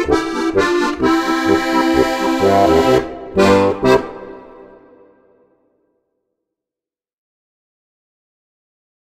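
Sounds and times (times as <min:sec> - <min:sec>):
harmonica: 0:00.0 - 0:05.2.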